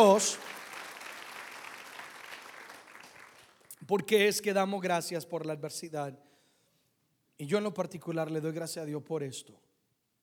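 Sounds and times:
speech: 0:00.0 - 0:00.5, 0:03.9 - 0:06.3, 0:07.4 - 0:09.7
audience applauding: 0:00.0 - 0:03.8.

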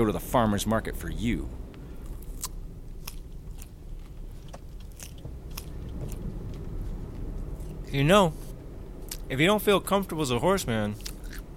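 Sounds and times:
speech: 0:00.0 - 0:01.6, 0:07.9 - 0:08.4, 0:09.3 - 0:11.1
horse biting and crunching a carrot: 0:02.0 - 0:08.0, 0:11.0 - 0:11.5.

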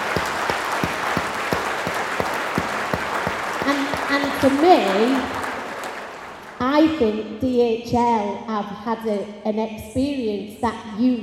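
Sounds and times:
steady rhythmic thumps: 0:00.0 - 0:05.8
large crowd applauding: 0:00.0 - 0:06.6
speech: 0:03.7 - 0:05.4, 0:06.8 - 0:11.2.

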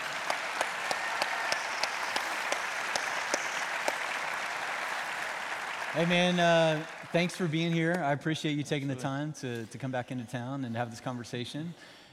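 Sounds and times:
audience applauding a guest at a Traders Point welcome: 0:00.0 - 0:08.0
speech: 0:06.0 - 0:12.0.

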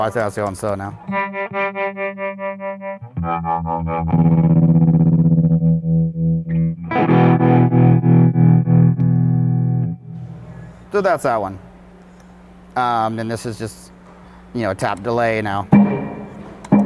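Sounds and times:
speech: 0:00.0 - 0:02.3, 0:03.2 - 0:04.6, 0:10.9 - 0:11.7, 0:12.8 - 0:13.9, 0:14.5 - 0:15.8
electric guitar through choppy sawtooth tremolo: 0:01.0 - 0:10.7, 0:15.7 - 0:16.8.

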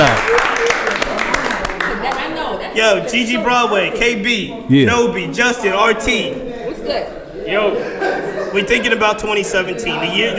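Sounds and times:
scattered hand claps: 0:00.0 - 0:02.3
crowd chatter: 0:01.0 - 0:10.3
speech: 0:02.8 - 0:10.3
laughter: 0:07.5 - 0:09.2.

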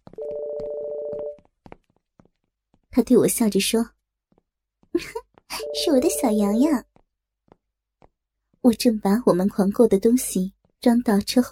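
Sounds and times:
mobile phone ringing: 0:00.2 - 0:01.4, 0:05.6 - 0:06.4
speech: 0:03.0 - 0:04.0, 0:05.0 - 0:05.2, 0:05.8 - 0:06.9, 0:08.6 - 0:11.5.

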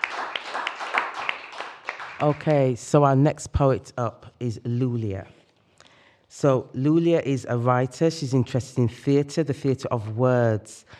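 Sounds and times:
audience applause: 0:00.0 - 0:02.6
speech: 0:02.2 - 0:05.4, 0:06.4 - 0:10.9.

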